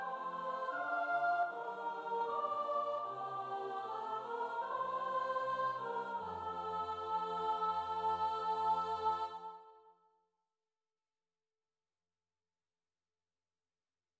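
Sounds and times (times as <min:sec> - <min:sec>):
soprano choir singing: 0:00.0 - 0:09.9.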